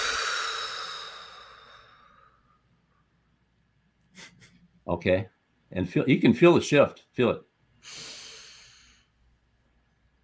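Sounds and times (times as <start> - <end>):
deep breath blown all the way out: 0.0 - 2.6, 7.8 - 9.1
speech: 4.9 - 8.1.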